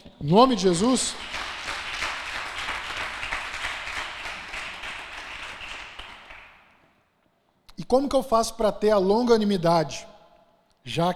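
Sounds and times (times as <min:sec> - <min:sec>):
speech: 0:00.2 - 0:01.4, 0:07.9 - 0:10.1, 0:10.8 - 0:11.1
audience applause: 0:00.8 - 0:06.6.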